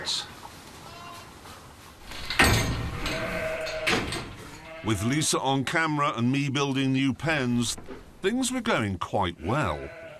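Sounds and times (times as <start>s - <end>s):
newborn lamb bleating: 0.8s - 1.3s, 3.0s - 5.4s, 9.3s - 10.1s
speech: 4.8s - 10.0s.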